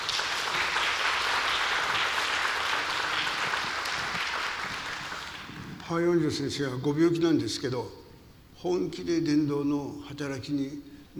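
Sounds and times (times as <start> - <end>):
audience applause: 0.0 - 5.9
speech: 5.9 - 8.0, 8.6 - 11.1.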